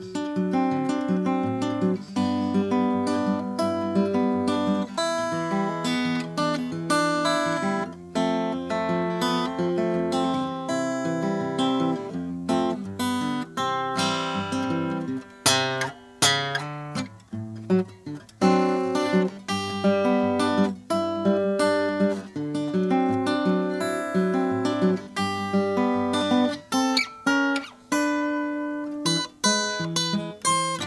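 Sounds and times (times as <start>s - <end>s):
1935 Harmony Rhythm King sunburst guitar: 0.0s - 30.8s.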